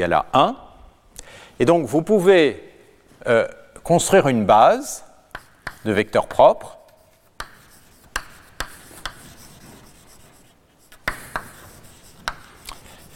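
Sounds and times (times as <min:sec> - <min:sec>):
speech: 0:00.0 - 0:00.6, 0:01.6 - 0:05.1, 0:05.8 - 0:06.8
writing on a board during a maths lecture: 0:05.3 - 0:13.1.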